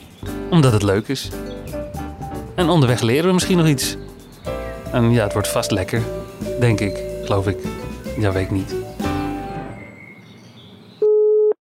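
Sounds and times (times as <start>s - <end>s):
speech: 0.2s - 1.5s, 2.6s - 4.1s, 4.9s - 8.9s
telephone call tone: 11.0s - 11.5s.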